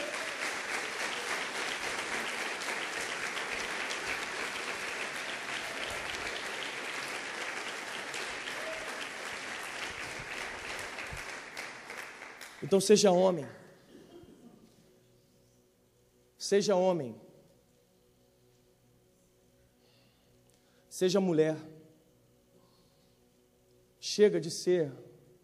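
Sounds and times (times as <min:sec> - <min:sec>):
audience applause: 0:00.0 - 0:12.8
speech: 0:12.6 - 0:13.6, 0:16.5 - 0:17.2, 0:21.0 - 0:21.7, 0:24.2 - 0:25.1.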